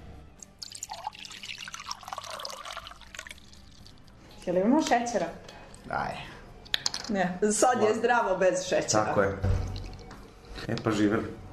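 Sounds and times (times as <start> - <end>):
water poured into a glass of freshly squeezed lemon juice: 0.4 - 4.2, 9.5 - 10.1
speech: 4.4 - 6.4, 7.1 - 9.5, 10.7 - 11.4.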